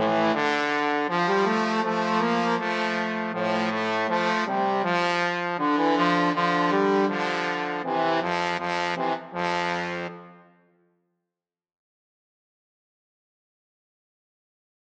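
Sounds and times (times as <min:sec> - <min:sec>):
trombone trio: 0:00.0 - 0:10.4.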